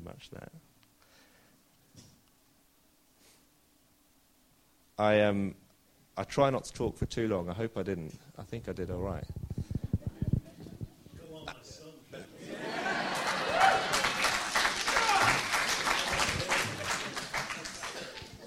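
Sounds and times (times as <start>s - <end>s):
speech: 0.1s - 0.7s, 5.0s - 5.6s, 6.2s - 9.4s
laughter: 9.9s - 18.4s
audience applause: 12.4s - 18.4s
crowd cheering: 12.4s - 18.4s.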